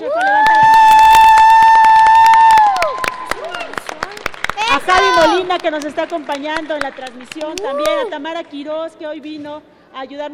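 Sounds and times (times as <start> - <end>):
audience cheering: 0.0 - 5.8, 7.0 - 8.2
audience applause: 0.0 - 8.2
speech: 5.7 - 10.3.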